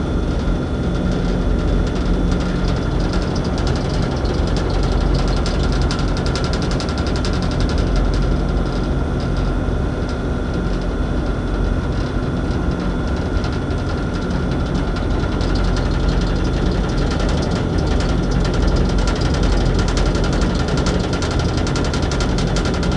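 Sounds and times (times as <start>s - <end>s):
rattly air conditioner: 0.0s - 22.9s.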